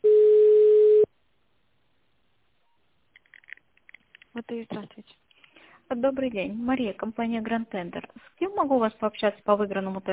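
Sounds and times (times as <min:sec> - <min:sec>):
telephone line tone during a call transfer: 0:00.0 - 0:01.1
speech: 0:04.4 - 0:05.3, 0:05.9 - 0:10.1.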